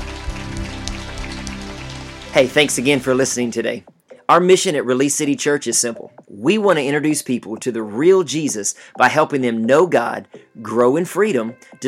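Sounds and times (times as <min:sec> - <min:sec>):
audience clapping: 0:00.0 - 0:03.2
speech: 0:02.3 - 0:11.8.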